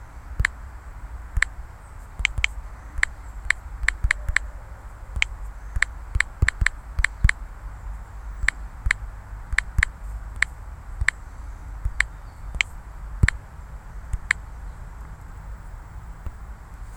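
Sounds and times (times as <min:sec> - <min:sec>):
great spotted woodpecker: 0:00.0 - 0:16.8.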